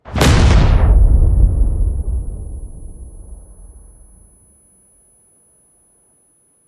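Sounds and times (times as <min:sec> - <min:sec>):
explosion: 0:00.0 - 0:04.5.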